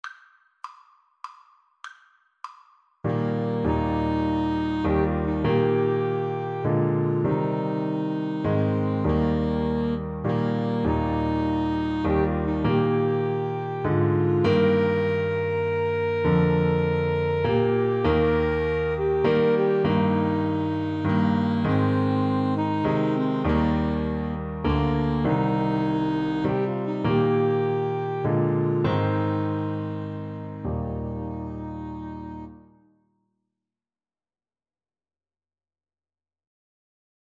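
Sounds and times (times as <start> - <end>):
piano trio: 3.0 - 32.7.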